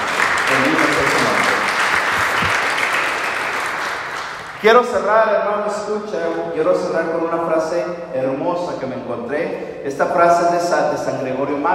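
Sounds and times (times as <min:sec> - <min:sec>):
crowd applauding: 0:00.0 - 0:04.8
speech: 0:04.6 - 0:11.7.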